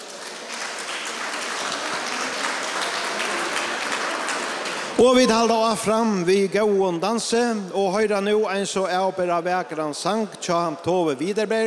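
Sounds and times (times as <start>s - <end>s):
crowd applauding: 0.0s - 5.7s
speech: 5.0s - 11.6s.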